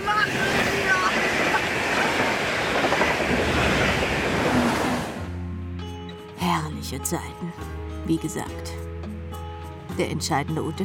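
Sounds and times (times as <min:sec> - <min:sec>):
train rattling along tracks heard from inside an open-plan passenger carriage: 0:00.0 - 0:05.3
speech: 0:06.9 - 0:08.8, 0:10.0 - 0:10.8.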